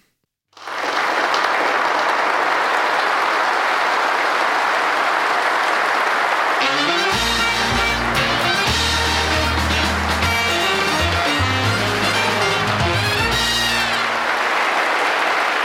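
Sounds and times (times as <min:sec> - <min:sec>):
applause sound effect: 0:00.6 - 0:15.6.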